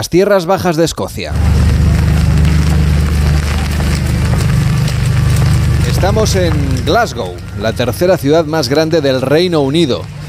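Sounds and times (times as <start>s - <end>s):
speech: 0.0s - 1.8s, 6.0s - 10.2s
light drizzle by a city river: 1.3s - 10.2s.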